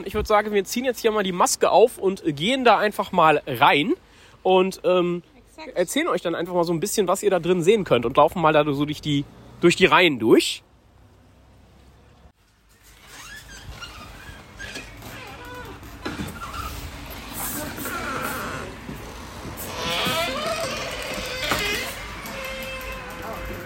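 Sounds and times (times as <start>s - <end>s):
speech: 0.0s - 10.7s
old wooden door creaking: 12.8s - 23.6s.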